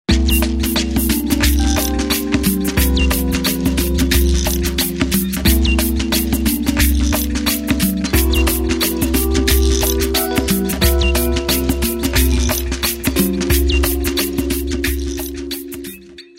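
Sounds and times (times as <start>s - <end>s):
ocean native percussion: 0.1s - 16.2s.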